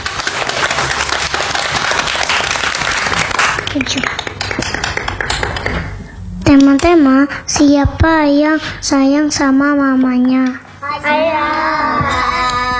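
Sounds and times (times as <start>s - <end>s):
audience applause: 0.0s - 5.9s, 11.3s - 12.7s
speech: 6.5s - 12.4s.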